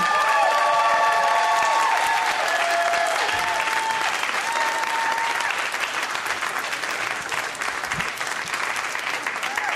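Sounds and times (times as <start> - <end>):
crowd whooping and cheering: 0.0 - 6.2, 9.0 - 9.7
crowd clapping: 0.0 - 9.7.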